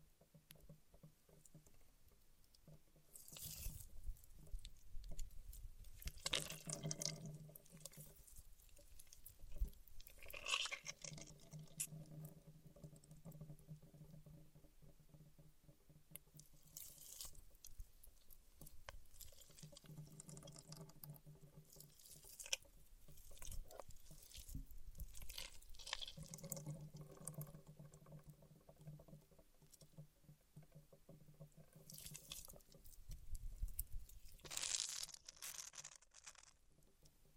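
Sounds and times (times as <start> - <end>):
paraffin wax peeled and scratched, crackling and scraping: 2.6 - 14.2, 16.2 - 28.0, 31.2 - 37.2.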